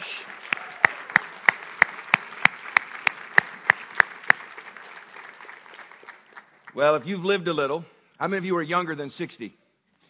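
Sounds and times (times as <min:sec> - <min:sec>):
audience clapping in unison: 0:00.0 - 0:07.0
speech: 0:06.8 - 0:09.6.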